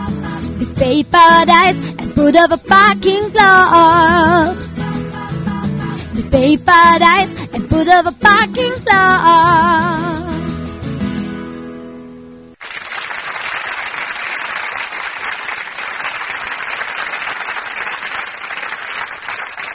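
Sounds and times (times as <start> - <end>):
speech: 0.6 - 4.8, 6.2 - 10.2
audience applause: 12.6 - 19.7.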